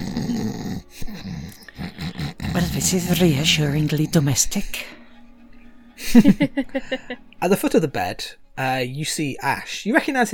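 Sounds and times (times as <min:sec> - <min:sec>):
loud snoring of sleeping figure: 0:00.0 - 0:04.2
speech: 0:02.8 - 0:05.0, 0:06.1 - 0:10.3
laughter: 0:06.0 - 0:07.3.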